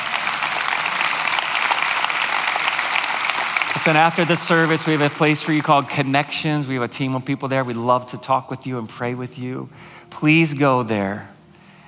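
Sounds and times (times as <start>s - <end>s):
large crowd clapping and cheering: 0.0s - 6.8s
speech: 3.9s - 11.3s.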